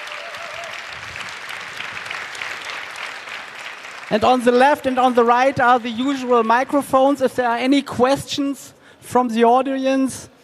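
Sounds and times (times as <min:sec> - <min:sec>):
audience applause: 0:00.0 - 0:06.9
speech: 0:04.1 - 0:10.3.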